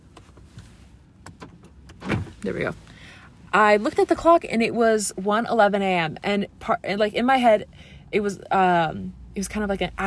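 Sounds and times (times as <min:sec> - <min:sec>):
car doors being locked: 0:01.2 - 0:02.5
speech: 0:02.4 - 0:02.9, 0:03.6 - 0:10.0.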